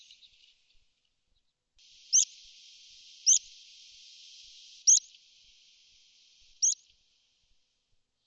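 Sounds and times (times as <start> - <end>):
bird chattering: 2.0 - 3.6, 4.6 - 5.1, 6.5 - 6.8.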